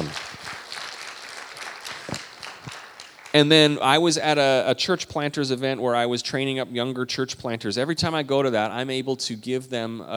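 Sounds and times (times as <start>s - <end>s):
audience clapping: 0.0s - 4.0s
speech: 3.3s - 10.1s.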